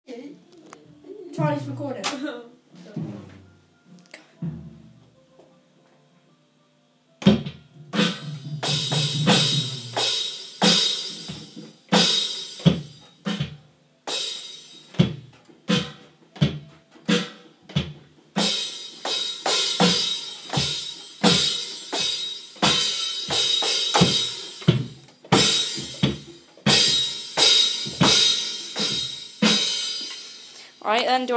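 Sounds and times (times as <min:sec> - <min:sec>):
live drum recording: 0:01.0 - 0:05.6, 0:07.2 - 0:31.3.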